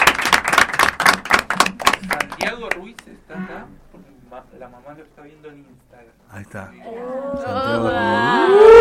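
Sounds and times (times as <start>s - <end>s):
audience applause at the close of a school event: 0.0s - 2.8s
speech: 2.3s - 8.7s.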